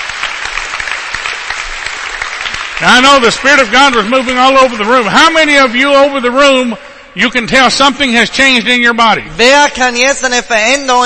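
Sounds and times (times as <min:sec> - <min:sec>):
audience applause during a church service: 0:00.0 - 0:06.8
speech: 0:02.8 - 0:11.0.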